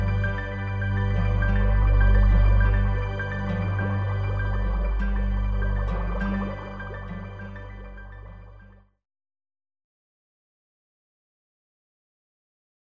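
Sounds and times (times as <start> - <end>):
waves: 0.0 - 8.7.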